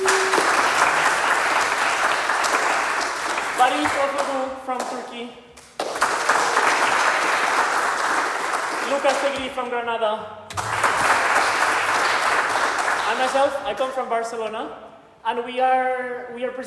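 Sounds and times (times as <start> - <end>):
audience applause: 0.0 - 4.4, 5.8 - 9.6, 10.5 - 13.5
speech: 3.7 - 5.7, 8.9 - 10.4, 13.1 - 16.6.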